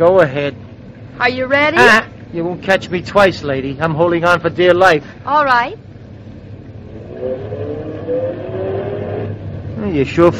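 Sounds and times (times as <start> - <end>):
speech: 0.0 - 5.8, 9.8 - 10.3
car engine revving and accelerating away: 6.2 - 10.3.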